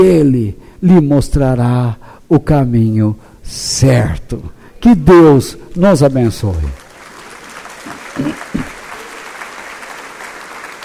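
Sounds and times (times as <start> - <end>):
speech: 0.0 - 6.8, 8.2 - 8.7
audience applauding: 5.9 - 10.8.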